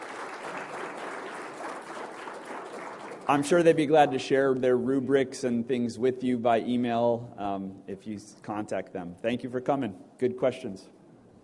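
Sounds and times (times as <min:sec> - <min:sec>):
audience applause: 0:00.0 - 0:03.7
speech: 0:03.3 - 0:11.0.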